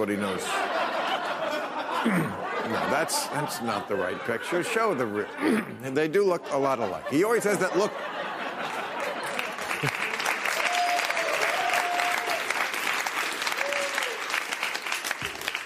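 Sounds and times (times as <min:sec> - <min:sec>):
speech: 0:00.0 - 0:00.8, 0:02.0 - 0:08.3
laughter: 0:00.0 - 0:10.9
audience applause: 0:08.5 - 0:15.6.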